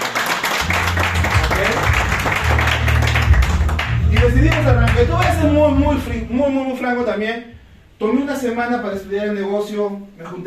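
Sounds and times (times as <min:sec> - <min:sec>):
audience applause: 0:00.0 - 0:05.4
low droning tone: 0:00.6 - 0:06.5
speech: 0:04.2 - 0:10.4.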